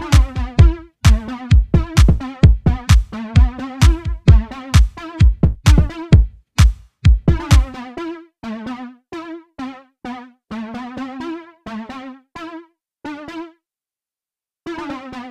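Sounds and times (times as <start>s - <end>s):
chill beat: 0.0s - 7.8s.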